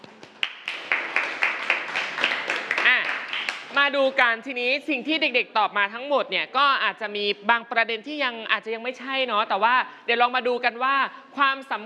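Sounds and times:
classroom students applauding: 0:00.2 - 0:03.8
speech: 0:03.9 - 0:11.8.

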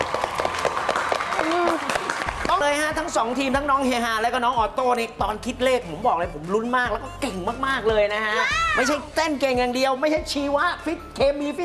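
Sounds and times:
audience applause: 0:00.0 - 0:03.2
speech: 0:02.6 - 0:11.6.

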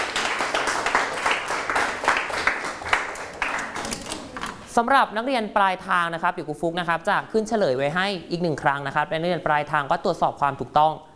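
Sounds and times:
classroom clapping: 0:00.0 - 0:04.4
speech: 0:04.8 - 0:11.1.

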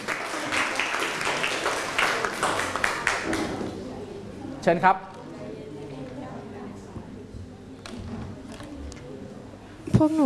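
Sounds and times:
audience applause: 0:00.0 - 0:03.6
speech: 0:04.6 - 0:05.1, 0:10.0 - 0:10.2.

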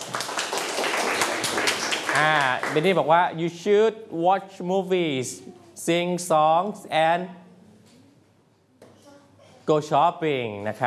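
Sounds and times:
class of students clapping for a classmate: 0:00.0 - 0:03.0
speech: 0:02.2 - 0:07.4, 0:09.7 - 0:10.8.

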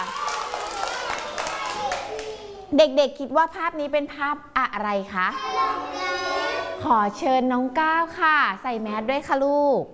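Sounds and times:
children clapping for themselves after a picture-guessing activity: 0:00.0 - 0:02.7
speech: 0:02.7 - 0:06.2, 0:06.8 - 0:09.9.

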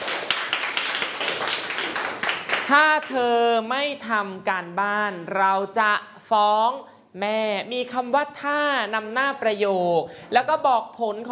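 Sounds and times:
class rhythmic hand clapping praising a pupil during a Thai language lesson: 0:00.0 - 0:03.2
speech: 0:02.7 - 0:11.3.

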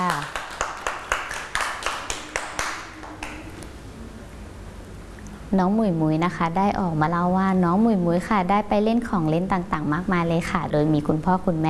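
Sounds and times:
children clapping: 0:00.0 - 0:03.6
speech: 0:05.5 - 0:11.6.

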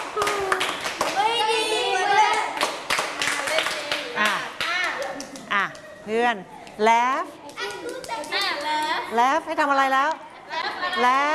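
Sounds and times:
children clapping hands: 0:00.0 - 0:05.9, 0:07.5 - 0:09.0
children talking and calling out: 0:01.1 - 0:02.6, 0:03.4 - 0:09.1
speech: 0:06.1 - 0:10.2, 0:11.0 - 0:11.3.

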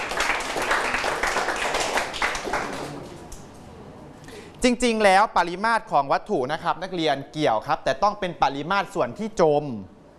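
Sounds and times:
students clapping hands: 0:00.0 - 0:03.4
speech: 0:04.6 - 0:10.0.

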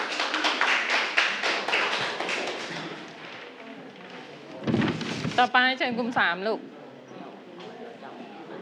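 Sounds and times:
people clapping: 0:00.0 - 0:03.7
speech: 0:05.4 - 0:06.7.

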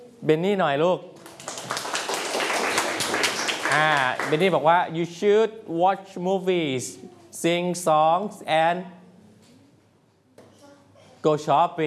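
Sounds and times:
speech: 0:00.2 - 0:01.1, 0:03.7 - 0:09.0, 0:11.2 - 0:11.8
classmates clapping in a classroom: 0:01.2 - 0:04.6.

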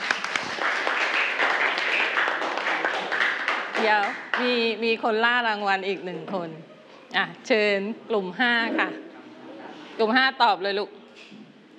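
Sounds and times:
hands clapping: 0:00.0 - 0:04.6
speech: 0:03.8 - 0:09.0, 0:10.0 - 0:11.4.

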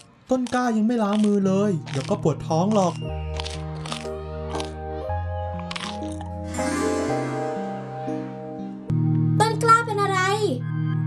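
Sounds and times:
crunching while eating a snack: 0:00.0 - 0:06.5
speech: 0:00.3 - 0:03.6
sustained musical tones: 0:01.6 - 0:11.0.

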